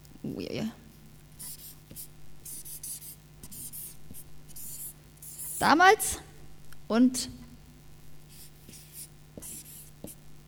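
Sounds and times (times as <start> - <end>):
low steady hum: 0.0 - 10.4
handwriting on a surface: 1.4 - 5.6, 8.3 - 10.4
speech: 5.6 - 6.2, 6.9 - 7.4.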